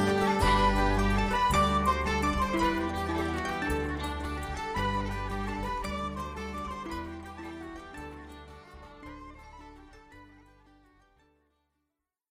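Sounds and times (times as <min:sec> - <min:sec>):
trio playing a Galician carol: 0:00.0 - 0:09.8.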